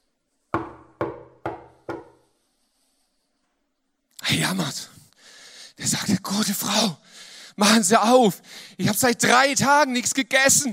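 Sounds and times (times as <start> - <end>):
knocking on a door: 0.6 - 2.2
speech: 4.3 - 5.0, 5.8 - 10.7.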